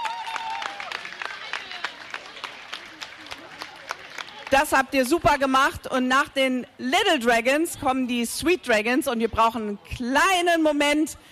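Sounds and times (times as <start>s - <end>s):
audience applause: 0.0s - 4.8s
speech: 4.5s - 11.3s.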